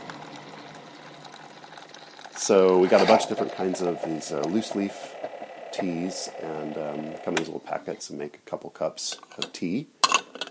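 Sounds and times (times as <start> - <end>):
Keurig coffee machine heating water: 0.0 - 7.9
speech: 2.4 - 5.2, 5.8 - 10.0.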